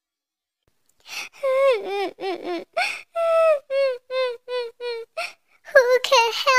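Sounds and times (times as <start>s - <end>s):
little princess crying in a fairy tale: 1.3s - 6.4s.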